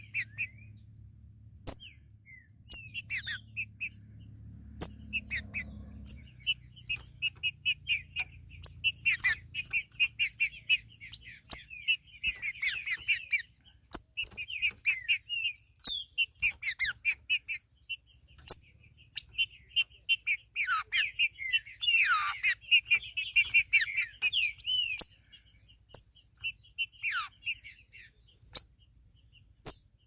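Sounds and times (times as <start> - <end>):
green-winged saltator chirping song: 0.0 - 30.0.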